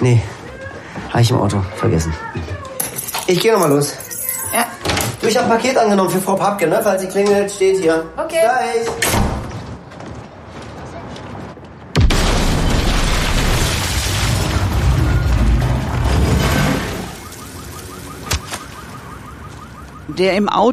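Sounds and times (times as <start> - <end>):
speech: 0.0 - 0.3, 1.0 - 2.7, 3.3 - 9.2, 20.2 - 20.7
bomb explosion: 12.0 - 17.5.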